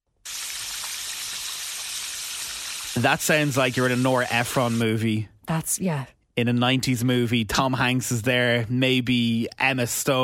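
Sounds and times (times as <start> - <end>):
Foley rain made by shaking: 0.3 - 4.8
speech: 3.0 - 10.2.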